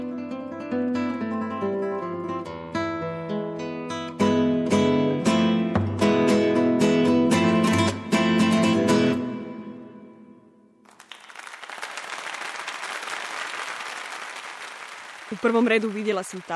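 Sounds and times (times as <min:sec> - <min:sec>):
final concert music: 0:00.0 - 0:10.9
applause after a concert: 0:10.9 - 0:16.5
speech: 0:15.4 - 0:16.5.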